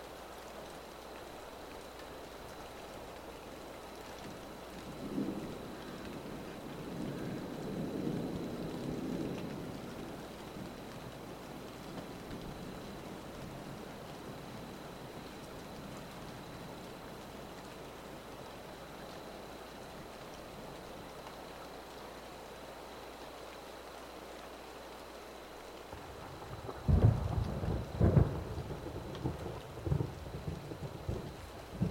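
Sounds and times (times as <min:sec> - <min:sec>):
rain: 0:00.0 - 0:31.8
thunder: 0:04.9 - 0:10.8, 0:25.9 - 0:31.8.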